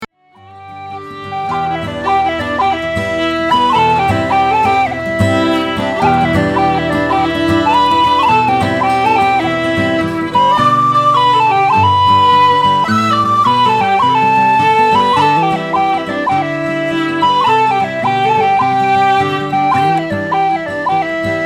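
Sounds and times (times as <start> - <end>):
whistle melody: 0.2 - 21.4.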